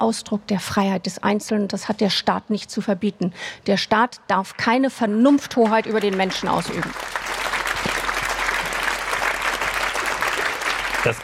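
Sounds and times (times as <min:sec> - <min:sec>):
speech: 0:00.0 - 0:07.3, 0:11.0 - 0:11.2
audience applause: 0:05.5 - 0:11.2.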